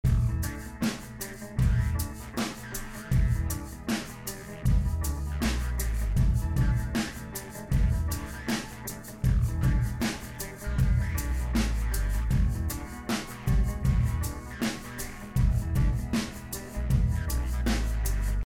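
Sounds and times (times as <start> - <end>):
drum school music: 0.0 - 18.4.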